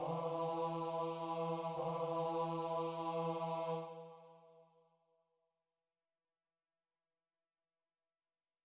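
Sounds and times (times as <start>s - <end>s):
sung section of a mass: 0.0s - 4.6s.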